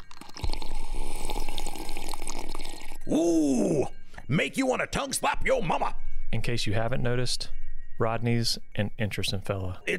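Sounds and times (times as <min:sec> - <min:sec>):
man taking a drink: 0:00.0 - 0:04.3
speech: 0:03.1 - 0:09.9.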